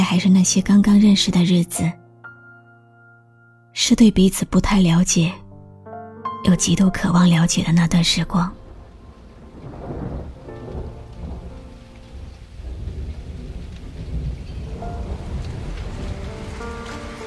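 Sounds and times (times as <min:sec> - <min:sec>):
speech: 0:00.1 - 0:02.0, 0:03.8 - 0:05.4, 0:06.4 - 0:08.6
rain: 0:06.7 - 0:17.2
thunder: 0:08.6 - 0:17.2.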